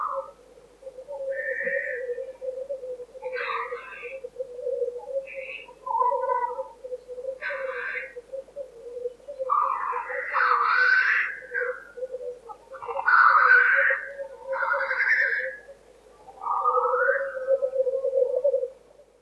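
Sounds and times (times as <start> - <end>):
black grouse bubbling call: 0.0 - 19.1.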